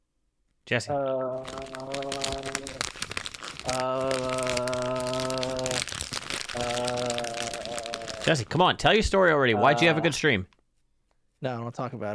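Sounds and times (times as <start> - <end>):
speech: 0.7 - 2.5, 8.3 - 10.6, 11.4 - 12.1
crinkly bag of Cheetos opening: 1.4 - 8.6.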